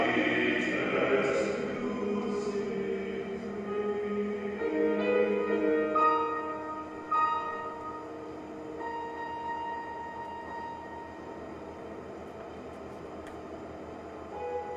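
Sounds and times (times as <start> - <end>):
carol music: 0.0 - 11.5.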